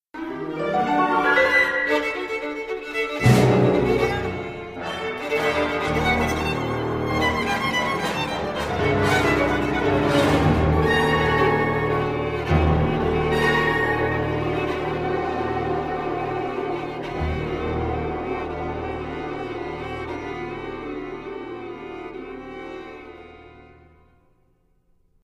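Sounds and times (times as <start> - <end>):
fiddle music: 0.2 - 24.0.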